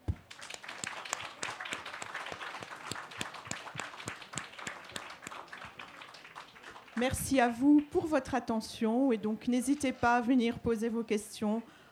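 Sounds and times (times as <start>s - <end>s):
audience applauding: 0.1s - 7.9s
speech: 7.0s - 11.8s.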